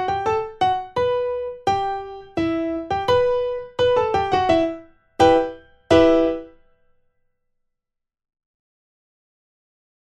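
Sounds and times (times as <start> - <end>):
primo part of four-hand practice piece: 0.0 - 6.6.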